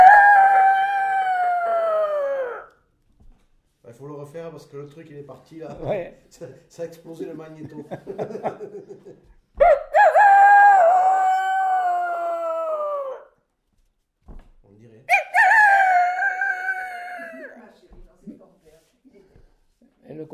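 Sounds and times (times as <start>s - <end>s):
person imitating a rooster crowing: 0.0s - 2.7s, 9.6s - 13.3s, 15.1s - 17.6s
speech: 4.4s - 9.4s
laughter: 7.3s - 9.4s.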